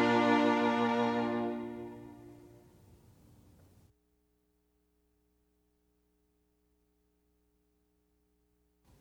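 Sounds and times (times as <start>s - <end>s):
strings: 0.0s - 2.8s.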